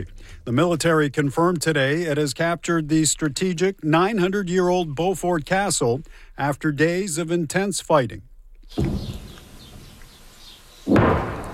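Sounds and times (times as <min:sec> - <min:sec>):
speech: 0:00.0 - 0:09.2
distant explosions echoing across the south: 0:10.9 - 0:11.5.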